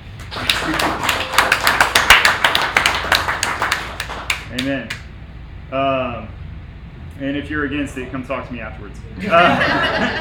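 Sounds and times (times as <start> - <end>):
audience applauding: 0.0 - 5.0
speech: 4.6 - 5.0, 5.7 - 6.4, 7.2 - 10.2
laughter: 9.2 - 10.2.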